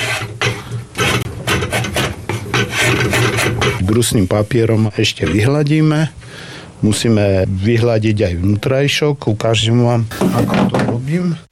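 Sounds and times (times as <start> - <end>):
drawknife shaving excess wood: 0.0 - 3.8
speech: 3.9 - 11.5.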